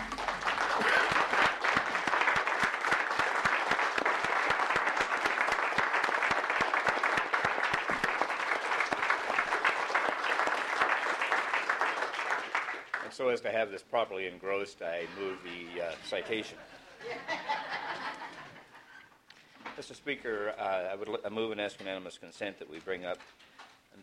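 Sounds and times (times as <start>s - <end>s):
laughter: 0.0s - 2.4s, 16.0s - 19.1s
round of applause: 0.0s - 13.2s
speech: 13.2s - 17.5s, 19.8s - 23.4s.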